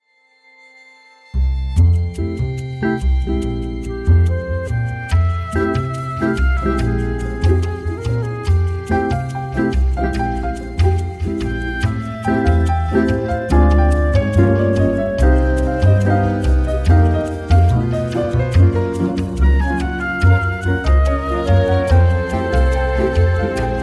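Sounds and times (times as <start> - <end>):
samba music: 1.5 - 23.8.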